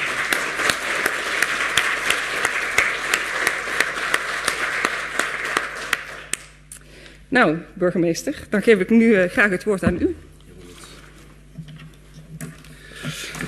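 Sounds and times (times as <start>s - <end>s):
audience applause: 0.0s - 6.4s
speech: 7.3s - 10.3s.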